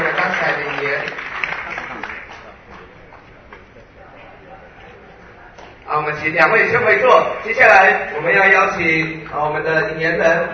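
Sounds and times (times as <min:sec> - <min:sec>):
warm applause: 0:00.0 - 0:03.3
speech: 0:06.1 - 0:10.5.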